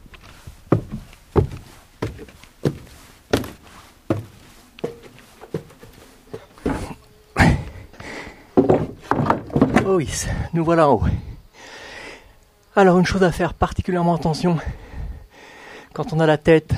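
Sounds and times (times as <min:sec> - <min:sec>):
footsteps climbing steep stairs inside a bell tower: 0:00.0 - 0:10.4
speech: 0:09.9 - 0:11.2, 0:12.8 - 0:14.8, 0:16.0 - 0:16.7.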